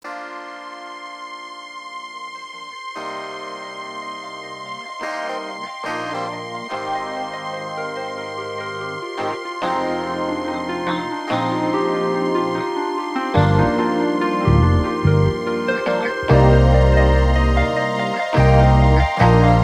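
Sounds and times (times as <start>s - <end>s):
funk music: 4.0s - 19.6s.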